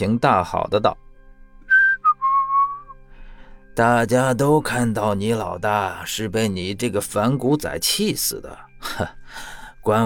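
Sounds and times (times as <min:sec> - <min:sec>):
speech: 0:00.0 - 0:01.0, 0:03.8 - 0:10.0
whistled tune: 0:01.7 - 0:03.0.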